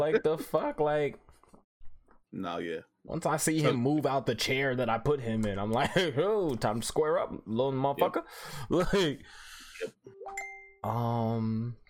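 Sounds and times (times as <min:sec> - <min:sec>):
speech: 0:00.0 - 0:01.2, 0:02.3 - 0:11.8
phone notification ding: 0:10.1 - 0:11.0.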